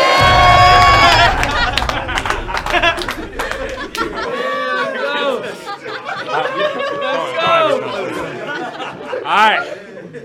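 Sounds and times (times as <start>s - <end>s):
crowd cheering with whoops and shouts: 0.0s - 8.0s
laughter: 3.9s - 10.2s.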